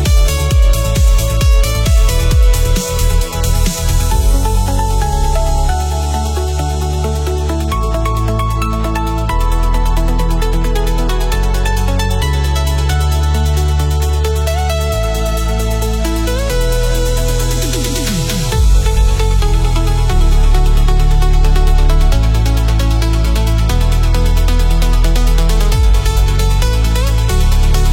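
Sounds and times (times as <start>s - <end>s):
melodic trance music: 0.0s - 27.9s.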